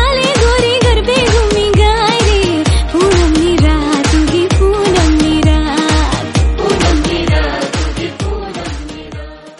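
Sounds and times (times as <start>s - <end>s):
Gujarati garba song: 0.0s - 9.3s.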